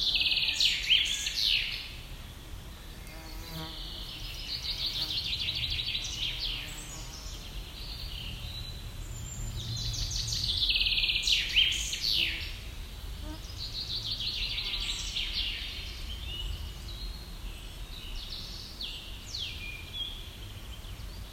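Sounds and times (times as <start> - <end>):
birds singing: 0.0 - 21.3.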